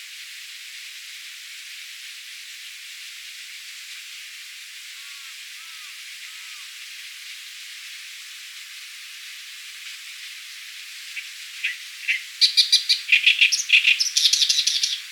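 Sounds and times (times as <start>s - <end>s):
Acrocephalus orientalis singing: 11.2s - 15.0s.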